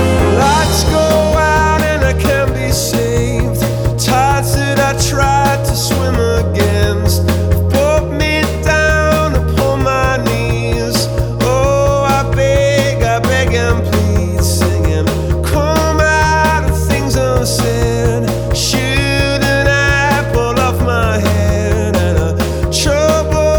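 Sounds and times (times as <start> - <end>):
man singing progressive vocal: 0.2 - 23.5.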